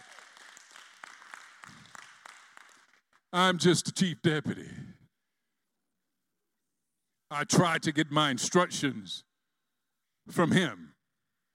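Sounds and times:
audience applause: 0.0s - 3.1s
speech: 3.3s - 5.0s, 7.3s - 9.3s, 10.3s - 10.9s.

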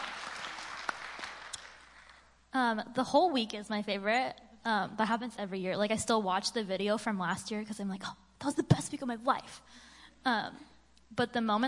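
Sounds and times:
applause: 0.0s - 2.3s
speech: 2.6s - 11.6s.

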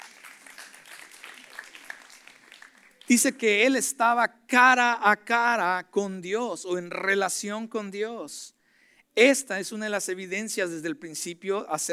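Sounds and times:
crowd applauding: 0.0s - 3.2s
speech: 3.1s - 8.6s, 9.2s - 11.9s.

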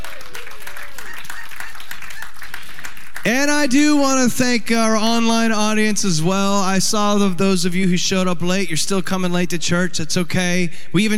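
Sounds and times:
church congregation applauding during an Easter Sunday morning service: 0.0s - 3.8s
speech: 3.2s - 11.1s.

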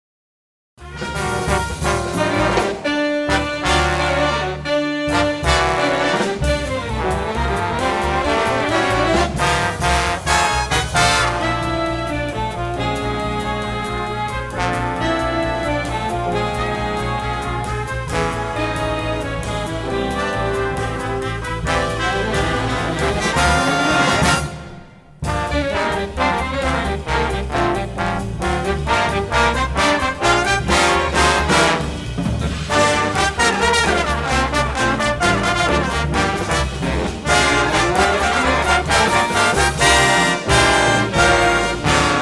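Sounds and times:
jazz music in G minor: 0.8s - 42.2s.

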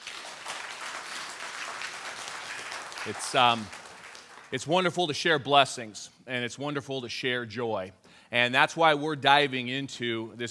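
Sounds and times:
audience clapping: 0.0s - 4.9s
speech: 3.0s - 3.8s, 4.5s - 10.4s.

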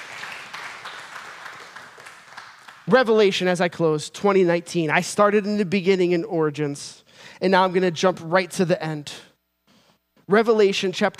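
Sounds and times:
crowd clapping: 0.0s - 3.4s
speech: 2.9s - 9.3s, 10.3s - 11.1s.

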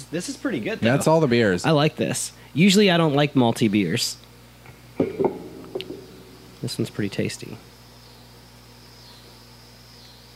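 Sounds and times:
low steady electrical hum: 0.0s - 10.3s
speech: 0.1s - 4.3s, 6.6s - 7.7s
cicadas buzzing outside: 4.8s - 10.3s.

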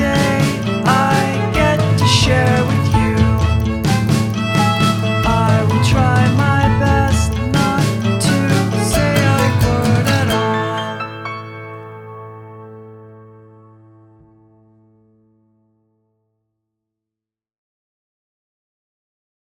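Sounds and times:
dirge: 0.0s - 10.8s.

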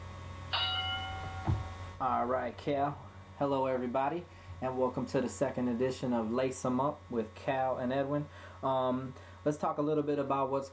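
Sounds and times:
low hum: 0.0s - 7.2s
boxing bell ringing: 0.5s - 1.8s
speech: 2.0s - 10.7s.

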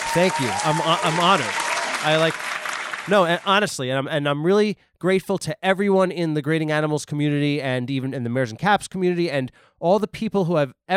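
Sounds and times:
applause sound effect from a button: 0.0s - 3.8s
speech: 0.1s - 10.9s.

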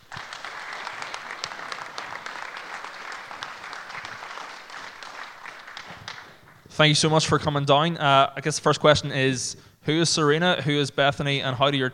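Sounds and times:
audience applause welcoming two hockey players at an evening event: 0.0s - 6.7s
speech: 6.8s - 11.9s.

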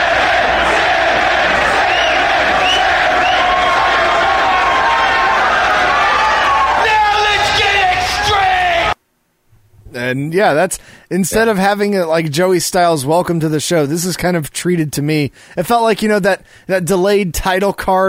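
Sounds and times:
wrestling crowd cheering at ECW CyberSlam 1996: 0.0s - 9.0s
speech: 10.1s - 18.0s.

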